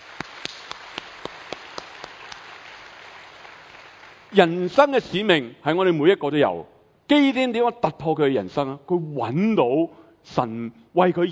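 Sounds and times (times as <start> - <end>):
audience clapping: 0.0 - 4.6
speech: 4.3 - 11.3.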